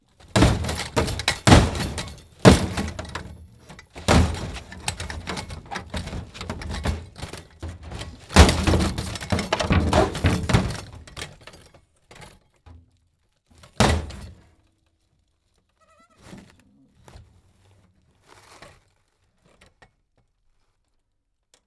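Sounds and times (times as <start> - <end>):
metal smash impacts: 0.4 - 3.4, 4.0 - 11.1.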